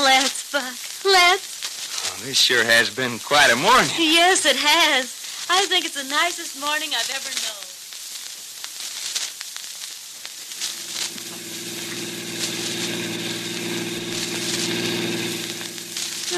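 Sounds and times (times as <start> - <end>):
hissy noise: 0.0 - 16.3
speech: 0.1 - 1.5, 2.2 - 7.6
car engine running: 10.6 - 16.3.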